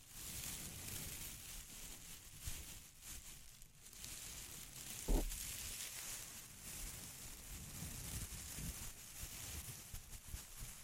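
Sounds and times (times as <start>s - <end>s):
crinkling: 0.0s - 10.8s
soft low rumbles: 5.0s - 5.6s.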